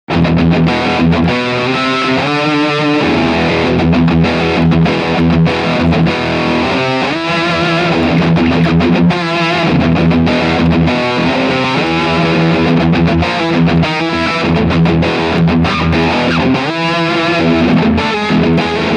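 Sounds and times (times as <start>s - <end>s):
overdriven guitar riff: 0.0s - 18.9s.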